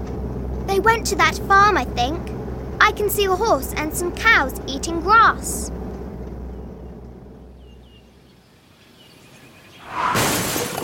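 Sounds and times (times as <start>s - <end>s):
speech: 0.8s - 5.8s
car crashing into a tree: 9.8s - 10.8s.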